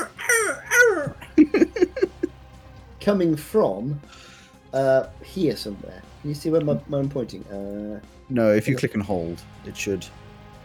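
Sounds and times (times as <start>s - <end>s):
voice imitating a wounded parrot: 0.0s - 1.4s
laughter: 0.8s - 2.3s
speech: 3.1s - 10.2s.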